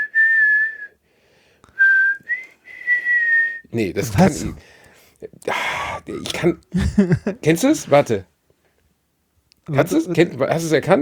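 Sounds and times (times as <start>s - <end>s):
person whistling a classical orchestral melody: 0.0s - 1.0s, 1.7s - 3.7s
speech: 3.7s - 8.3s, 9.7s - 11.0s
laughter: 4.0s - 4.6s, 6.5s - 7.8s.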